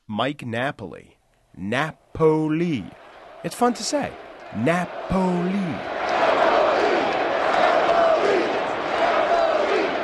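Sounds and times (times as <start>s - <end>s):
speech: 0.1s - 6.4s
stadium crowd of baseball fans screaming and roaring: 2.4s - 10.0s.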